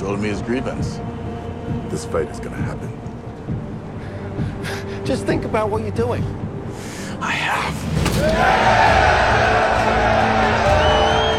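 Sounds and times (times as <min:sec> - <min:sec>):
speech: 0:00.1 - 0:03.7, 0:04.4 - 0:10.2
prisoners cheering: 0:08.1 - 0:11.3.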